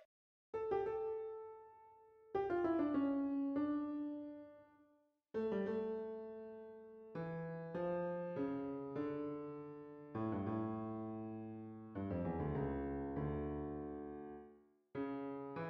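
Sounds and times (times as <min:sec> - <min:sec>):
toccata and fugue: 0:00.7 - 0:04.7, 0:05.4 - 0:15.6.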